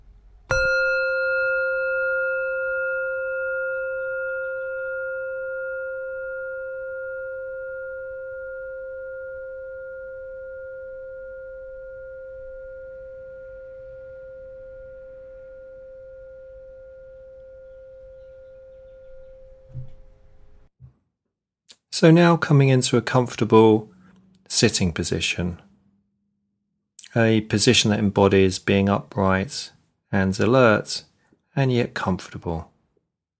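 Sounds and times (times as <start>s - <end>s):
meditation bell ringing: 0.5s - 19.7s
speech: 22.0s - 23.9s, 24.6s - 25.7s, 27.1s - 32.7s.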